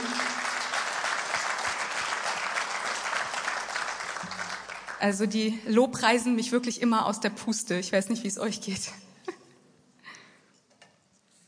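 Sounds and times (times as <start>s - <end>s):
audience applause for the band: 0.0s - 5.0s
speech: 5.0s - 9.0s.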